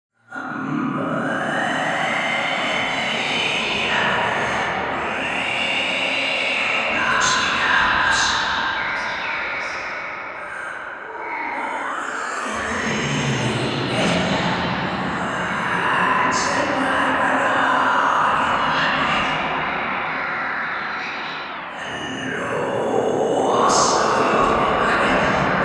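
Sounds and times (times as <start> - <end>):
Halloween whispers: 0.2 - 25.6.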